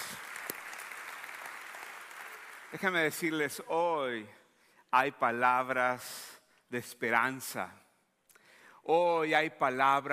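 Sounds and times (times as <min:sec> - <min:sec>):
audience applause: 0:00.0 - 0:03.0
speech: 0:02.7 - 0:07.8, 0:08.8 - 0:10.1.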